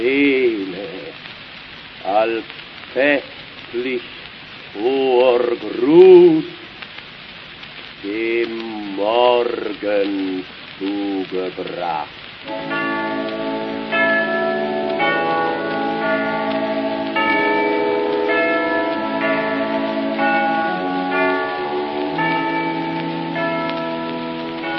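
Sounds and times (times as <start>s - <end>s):
speech: 0.0s - 0.8s, 2.1s - 6.6s, 8.0s - 13.0s
church bells ringing: 12.5s - 24.7s.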